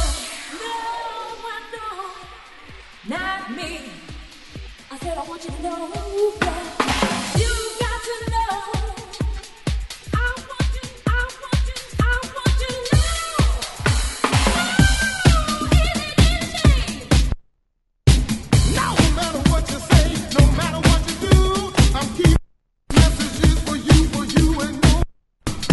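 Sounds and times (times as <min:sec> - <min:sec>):
disco music: 0:00.0 - 0:17.3, 0:18.1 - 0:25.7.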